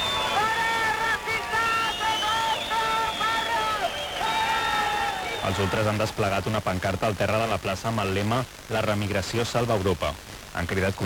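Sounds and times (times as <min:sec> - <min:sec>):
antifascist protesters shouting slogans: 0:00.1 - 0:05.9
speech: 0:05.5 - 0:11.0.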